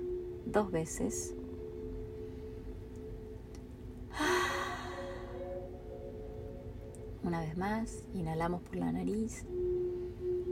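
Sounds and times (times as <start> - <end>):
faint steady low hum: 0.0 - 10.4
speech: 0.5 - 1.4, 7.3 - 9.6
person exhaling through the mouth: 4.1 - 5.4.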